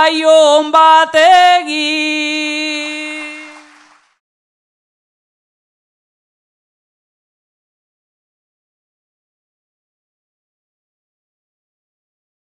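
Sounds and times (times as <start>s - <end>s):
person singing a bertso greeting verse: 0.0s - 3.8s.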